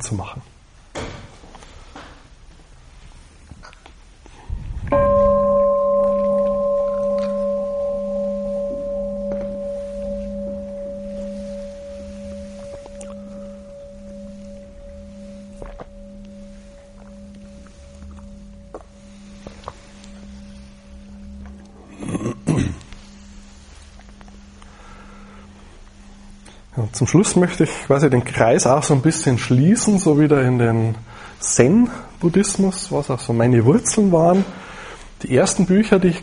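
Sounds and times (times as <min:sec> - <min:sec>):
speech: 0:00.0 - 0:00.5, 0:27.0 - 0:34.6, 0:35.2 - 0:36.2
bell ringing: 0:04.9 - 0:30.5.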